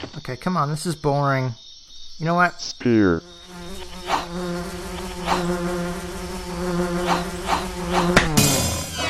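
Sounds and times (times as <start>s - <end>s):
speech: 0.3s - 3.4s, 4.7s - 5.8s
buzzing of a giant queen bee: 3.1s - 9.0s.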